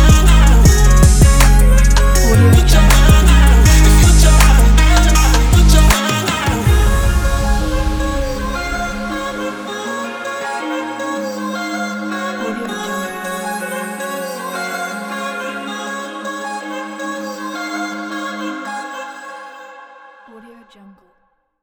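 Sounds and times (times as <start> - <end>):
emotional trap beat: 0.0 - 10.0
guitar: 0.0 - 18.9
vocals: 0.0 - 21.6.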